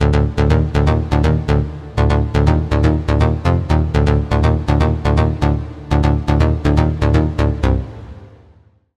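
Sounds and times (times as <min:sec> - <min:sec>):
lead melody: 0:00.0 - 0:08.6.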